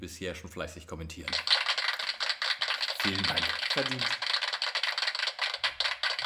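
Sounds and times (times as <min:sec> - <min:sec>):
speech: 0:00.0 - 0:01.7, 0:03.0 - 0:04.3
applause sound effect: 0:01.3 - 0:06.2.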